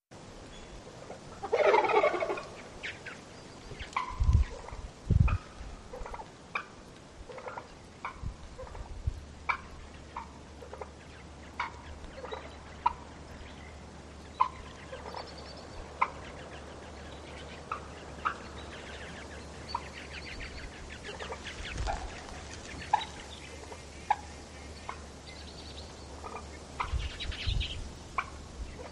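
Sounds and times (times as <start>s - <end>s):
turkey gobbling in a Staten Island sewer: 1.0s - 3.2s, 3.8s - 28.9s.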